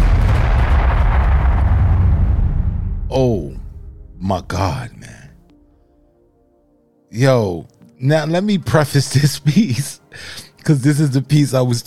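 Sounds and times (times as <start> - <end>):
bomb explosion sound effect: 0.0 - 5.4
speech: 4.3 - 5.2, 7.1 - 11.8.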